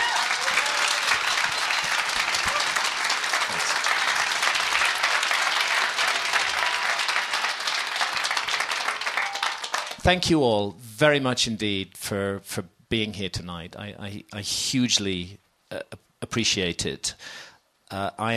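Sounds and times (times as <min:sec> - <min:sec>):
audience applause: 0:00.0 - 0:10.0
speech: 0:10.1 - 0:18.3.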